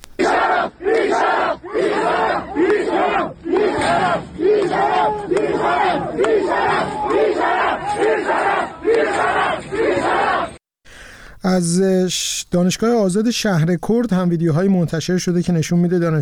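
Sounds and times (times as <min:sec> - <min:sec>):
medical sciences students chanting protest slogans at a university in Ardabil: 0:00.2 - 0:10.6
speech: 0:11.4 - 0:16.2.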